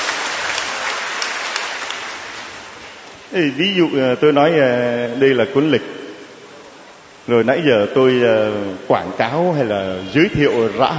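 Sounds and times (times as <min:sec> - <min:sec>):
crowd clapping: 0:00.0 - 0:03.1
speech: 0:03.3 - 0:06.0, 0:07.3 - 0:10.9.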